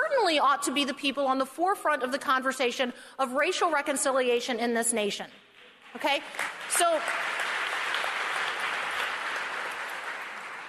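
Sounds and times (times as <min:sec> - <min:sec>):
speech: 0:00.3 - 0:07.4
audience applause during a talk on racial reconciliation: 0:06.3 - 0:10.6.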